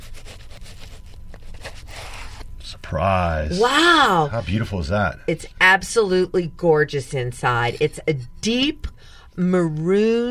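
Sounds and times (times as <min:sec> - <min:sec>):
knife sawing through a hard-looking spongy-skinned fruit: 0:00.0 - 0:02.4
speech: 0:02.9 - 0:10.2.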